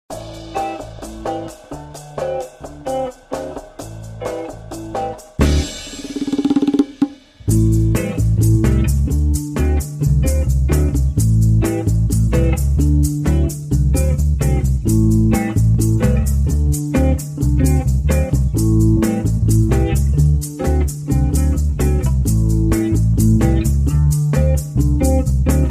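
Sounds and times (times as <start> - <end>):
waiting room music: 0.1 - 25.6.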